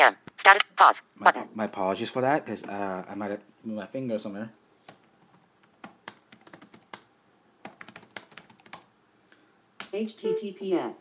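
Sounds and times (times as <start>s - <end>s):
speech: 0.0s - 4.6s, 9.9s - 10.9s
typing on a computer keyboard: 4.8s - 8.9s.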